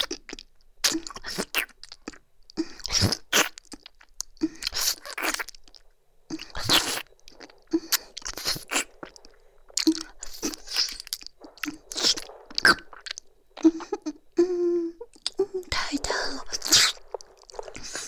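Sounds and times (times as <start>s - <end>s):
crunchy chewing of food: 0.0s - 14.4s, 15.0s - 18.0s
soft whispering: 6.3s - 18.0s.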